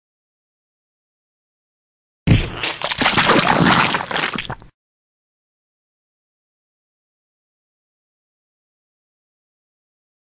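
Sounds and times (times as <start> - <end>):
splat: 2.3 - 4.7.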